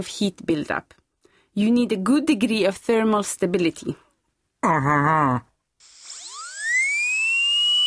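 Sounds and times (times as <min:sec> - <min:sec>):
speech: 0:00.0 - 0:01.0, 0:01.6 - 0:04.0, 0:04.6 - 0:05.5
high-speed dental drill whining: 0:05.8 - 0:07.8
low buzzing hum: 0:05.8 - 0:07.8.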